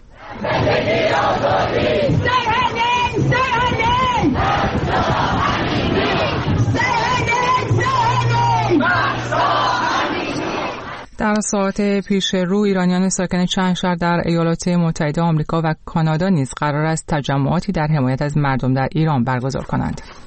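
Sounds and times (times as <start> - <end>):
protesters in London chanting slogans supporting Mahsa Amini: 0.1 - 11.1
speech: 11.2 - 20.2.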